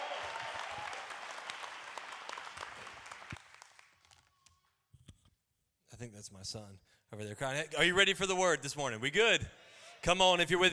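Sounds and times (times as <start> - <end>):
church audience clapping welcoming a pastor: 0.0 - 4.7
speech: 6.0 - 10.7.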